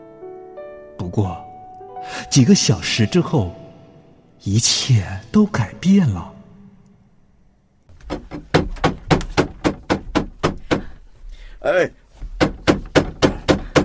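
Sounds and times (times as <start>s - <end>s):
speech: 1.0s - 3.6s, 4.4s - 6.3s, 11.7s - 12.0s
knocking on a door: 8.0s - 11.0s, 12.2s - 13.8s.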